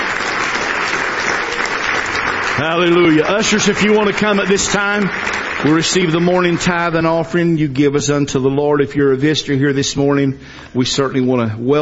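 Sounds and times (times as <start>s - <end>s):
church congregation clapping in praise during a morning service: 0.0s - 7.9s
speech: 2.6s - 11.8s.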